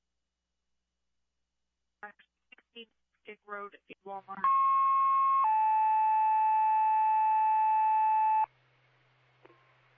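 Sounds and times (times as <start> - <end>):
speech: 2.0 - 4.8
radio dispatch alert tones: 4.4 - 8.5.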